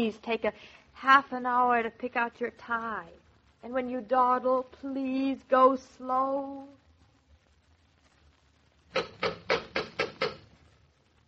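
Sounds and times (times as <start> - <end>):
speech: 0.0 - 6.8, 8.9 - 9.4
door knocker knocking: 8.9 - 10.5.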